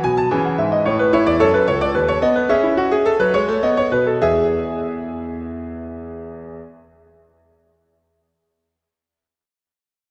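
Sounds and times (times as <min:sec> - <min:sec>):
fugue: 0:00.0 - 0:06.9.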